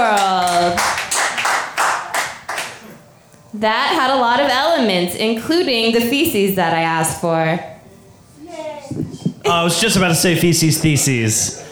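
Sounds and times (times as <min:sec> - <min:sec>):
audience applause: 0:00.0 - 0:03.0
speech: 0:03.6 - 0:07.7, 0:08.9 - 0:11.6.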